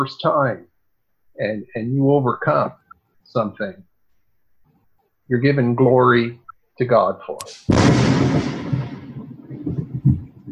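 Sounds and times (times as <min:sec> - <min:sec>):
speech: 0:00.0 - 0:00.7, 0:01.4 - 0:03.9, 0:05.3 - 0:08.8
thunder rumbling: 0:07.7 - 0:10.5.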